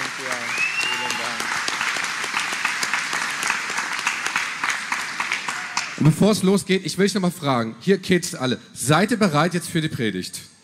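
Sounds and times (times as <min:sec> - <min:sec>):
warm applause: 0:00.0 - 0:06.2
speech: 0:06.0 - 0:10.5.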